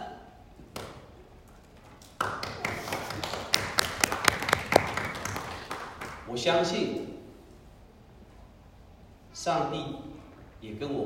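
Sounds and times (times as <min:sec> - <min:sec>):
audience applauding: 0:02.0 - 0:06.3
speech: 0:06.3 - 0:07.1, 0:09.4 - 0:11.0.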